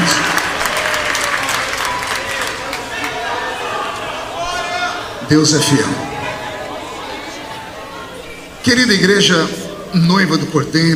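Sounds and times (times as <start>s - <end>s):
audience clapping: 0.0s - 4.1s
people shuffling to sit down: 0.9s - 8.6s
voices calling out and murmuring: 2.2s - 10.0s
speech: 5.3s - 6.1s, 8.7s - 10.9s.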